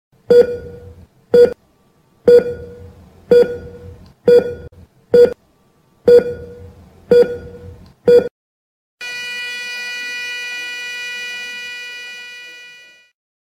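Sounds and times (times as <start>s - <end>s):
EKG heart monitor beeping: 0.3s - 1.6s, 2.3s - 5.4s, 6.1s - 8.3s.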